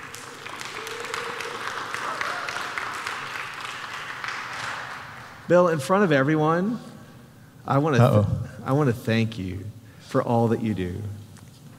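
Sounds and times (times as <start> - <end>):
crowd applause: 0.0 - 5.3
speech: 5.5 - 6.9, 7.7 - 11.2.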